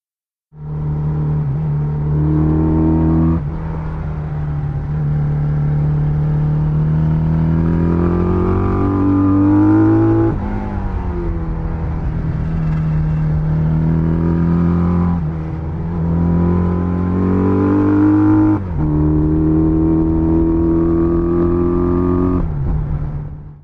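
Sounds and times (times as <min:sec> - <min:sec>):
1973 Benelli Tornado motorcycle engine: 0:00.5 - 0:23.6.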